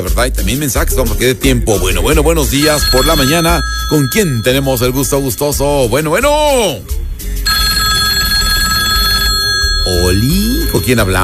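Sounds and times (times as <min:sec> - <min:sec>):
speech: 0:00.0 - 0:07.6, 0:09.8 - 0:11.2
telephone bell ringing with an incoming call to a radio show: 0:02.6 - 0:05.6, 0:07.5 - 0:11.2.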